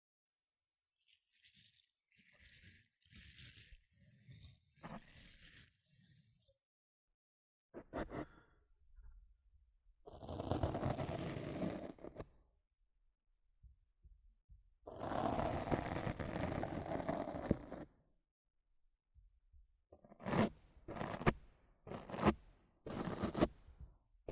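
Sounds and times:
rough scratching and brushing on a microphone: 0.9 - 6.4, 10.3 - 12.3, 14.9 - 17.9, 20.2 - 23.6.

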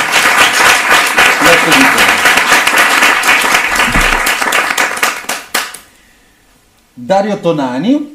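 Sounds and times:
audience applause: 0.0 - 5.8
speech: 1.6 - 2.1, 7.1 - 8.1.

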